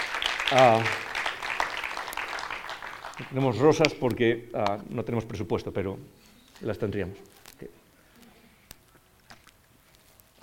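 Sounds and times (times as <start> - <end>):
applause: 0.0 - 4.0
speech: 0.5 - 1.0, 3.2 - 7.8.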